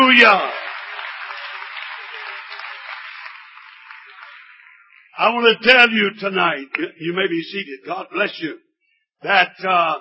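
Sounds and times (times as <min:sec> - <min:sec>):
audience clapping: 0:00.0 - 0:05.4
speech: 0:00.2 - 0:00.6, 0:05.2 - 0:08.6, 0:09.2 - 0:09.9.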